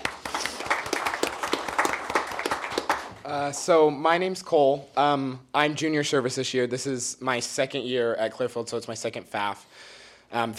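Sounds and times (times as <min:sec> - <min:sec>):
clapping: 0:00.0 - 0:03.2
speech: 0:03.3 - 0:10.5.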